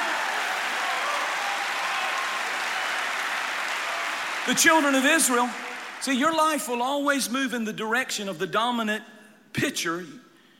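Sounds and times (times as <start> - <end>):
audience clapping hands: 0.0 - 6.6
speech: 4.5 - 10.2.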